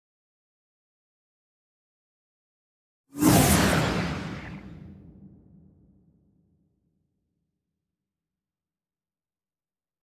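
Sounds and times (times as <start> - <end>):
magic energy shooting special effects: 3.2 - 5.0.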